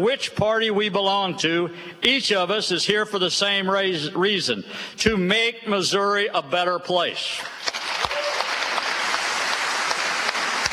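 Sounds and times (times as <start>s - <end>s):
speech: 0.0s - 7.8s
bipartisan legislative chamber applause: 7.4s - 10.7s.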